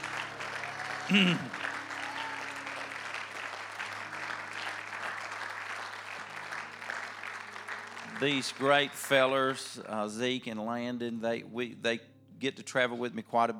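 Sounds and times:
audience applause: 0.0 - 9.8
raised voice: 1.0 - 1.6
speech: 1.1 - 1.7, 8.2 - 13.5.

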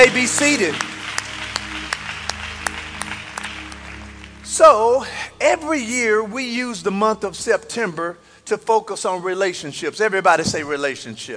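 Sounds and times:
speech: 0.0 - 0.9, 4.6 - 11.3
crowd audience hand clapping: 0.0 - 5.1.

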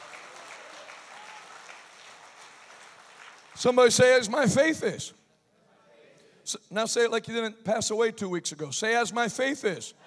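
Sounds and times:
audience hand clapping: 0.0 - 4.2
speech: 3.6 - 5.2, 6.5 - 10.0.

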